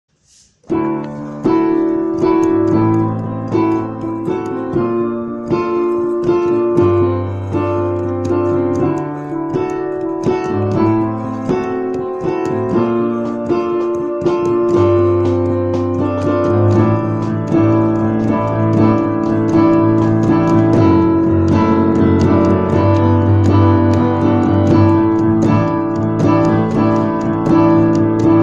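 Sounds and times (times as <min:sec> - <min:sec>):
cold piano theme: 0:00.1 - 0:28.4.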